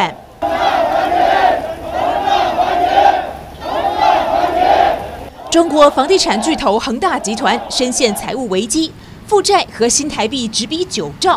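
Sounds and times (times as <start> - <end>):
crowd of investors shouting angrily: 0.4 - 8.5
speech: 5.6 - 11.3.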